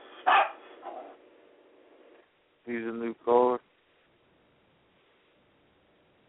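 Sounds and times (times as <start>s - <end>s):
dog barking: 0.2s - 1.2s
speech: 2.7s - 3.6s.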